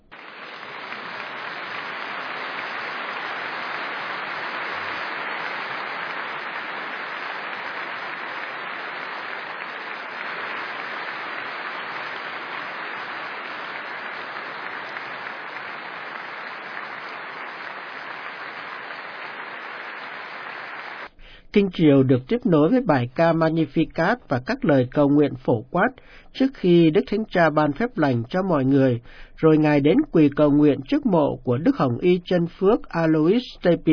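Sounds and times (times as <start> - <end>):
congregation applauding after the Pope's homily: 0.0 - 21.1
speech: 21.5 - 33.9.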